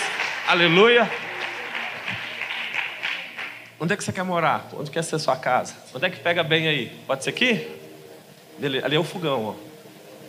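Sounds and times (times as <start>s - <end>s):
crowd applauding: 0.0s - 4.1s
speech: 0.5s - 1.2s, 3.8s - 7.8s, 8.6s - 9.7s.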